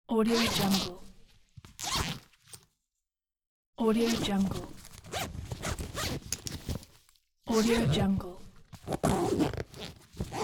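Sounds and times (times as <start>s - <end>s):
zipper: 0.3s - 1.1s, 1.7s - 2.6s, 4.0s - 6.9s, 7.5s - 8.2s, 8.8s - 10.4s.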